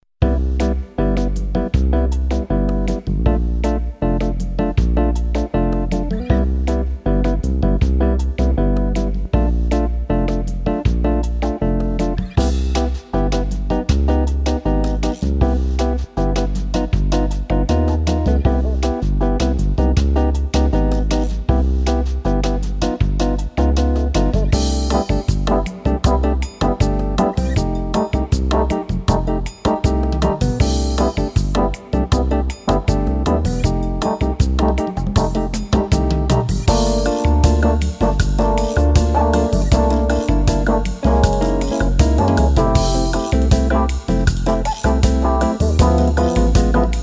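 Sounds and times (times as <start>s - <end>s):
bossa nova underscore music: 0.2s - 47.0s.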